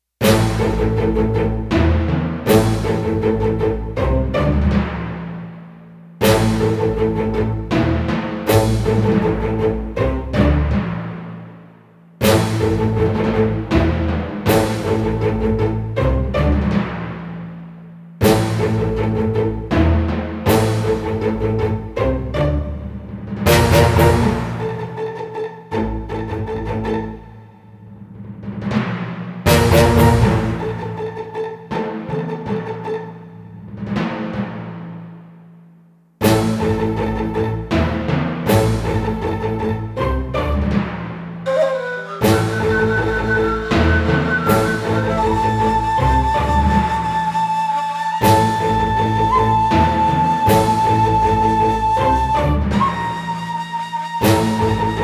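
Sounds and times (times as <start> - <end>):
tension music: 0.2 - 35.6, 36.2 - 55.0.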